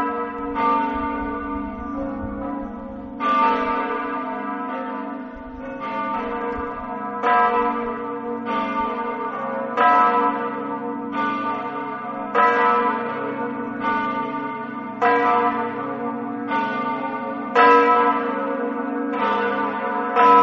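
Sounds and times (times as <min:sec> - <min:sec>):
church bells ringing in Mortegliano: 0:00.0 - 0:20.4.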